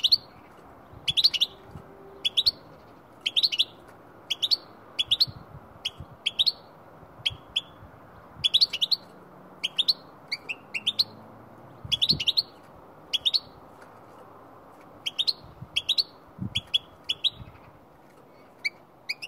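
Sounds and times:
goldfinch calling: 1.1 - 6.7, 8.4 - 11.2, 11.9 - 13.6, 15.0 - 17.6.

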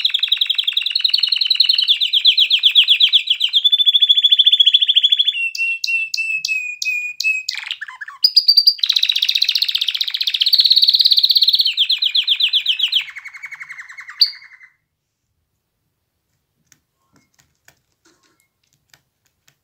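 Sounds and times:
canary singing trills and rolling tours: 0.0 - 14.8.

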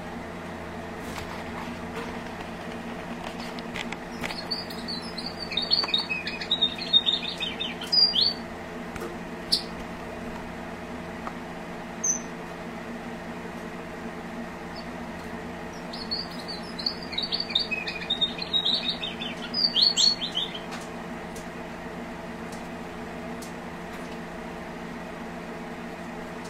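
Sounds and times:
low background hum: 0.0 - 26.4
strawberry finch twittering: 4.1 - 8.4, 12.0 - 12.3, 14.7 - 15.0, 15.7 - 20.7.

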